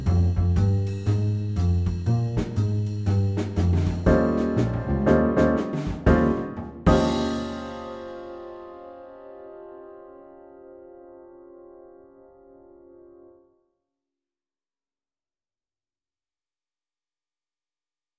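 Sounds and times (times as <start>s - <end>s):
jazz band playing blues: 0.0s - 9.0s.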